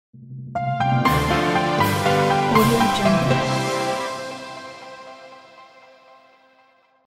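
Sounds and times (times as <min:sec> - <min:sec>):
waltz logo jingle: 0:01.3 - 0:05.2.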